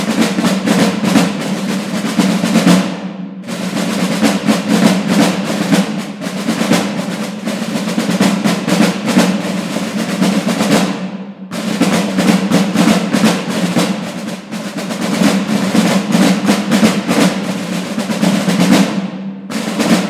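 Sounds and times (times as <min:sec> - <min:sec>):
marching snare drumming in brass band music: 0:00.0 - 0:20.0.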